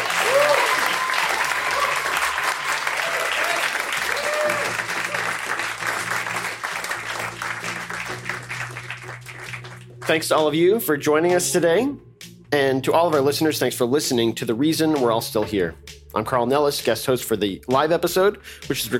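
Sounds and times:
audience applause: 0.0s - 10.2s
speech: 10.1s - 18.9s.

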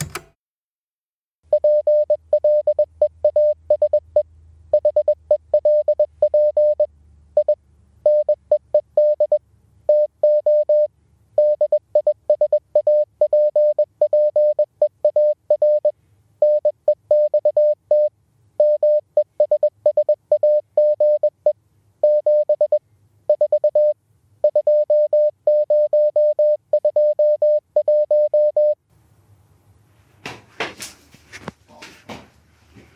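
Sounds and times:
touch-tone telephone beeps of a coded voicemail: 1.5s - 4.1s, 4.8s - 8.4s, 9.0s - 21.4s, 22.0s - 28.8s.

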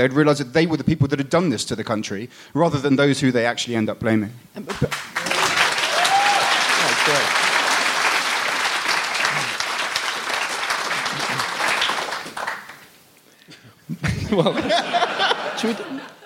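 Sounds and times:
speech: 0.0s - 5.2s, 14.4s - 14.8s
audience applause: 4.7s - 12.9s
whoops and cheers: 5.2s - 6.9s
laughter: 10.9s - 11.7s, 13.9s - 16.2s.

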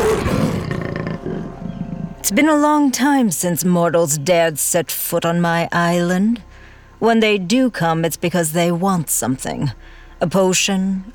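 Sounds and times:
panther growling and roaring: 0.0s - 2.2s
speech: 2.2s - 11.1s.

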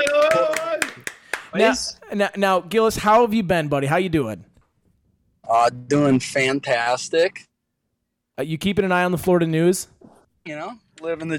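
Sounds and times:
hosts clapping: 0.0s - 1.6s
speech: 1.5s - 4.5s, 5.5s - 7.5s, 8.4s - 11.3s.

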